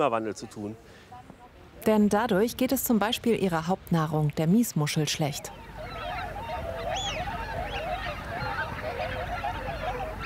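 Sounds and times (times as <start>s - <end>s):
speech: 0.0s - 1.1s, 1.8s - 5.7s
Eurasian wigeons whistling calls: 5.1s - 10.2s.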